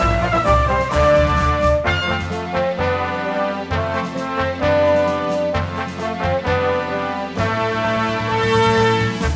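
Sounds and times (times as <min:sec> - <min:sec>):
main menu music: 0:00.2 - 0:09.2.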